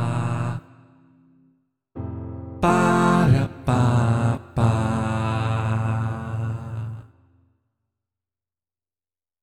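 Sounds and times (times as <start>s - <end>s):
person singing with piano: 0.0s - 0.7s, 2.0s - 7.1s.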